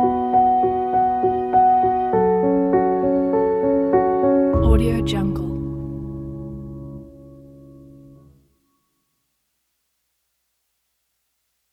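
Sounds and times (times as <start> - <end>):
sad emotional score: 0.0 - 8.2.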